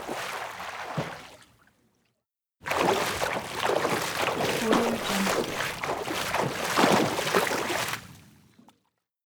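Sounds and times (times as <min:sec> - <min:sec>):
swimming with constant splashing in a pool: 0:00.1 - 0:01.4, 0:02.7 - 0:08.2.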